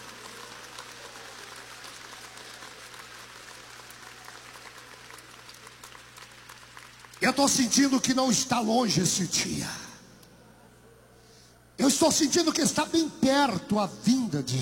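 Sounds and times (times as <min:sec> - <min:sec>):
audience applauding: 0:00.0 - 0:08.0
speech: 0:07.2 - 0:09.8, 0:12.0 - 0:14.5.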